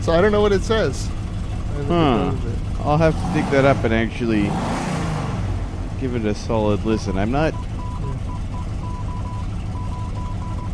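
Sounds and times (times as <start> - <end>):
heavy continuous low rumble: 0.0 - 9.8
speech: 0.1 - 1.2, 1.8 - 4.9, 6.0 - 8.2
Morse code beeps in a looping commercial: 7.5 - 10.7.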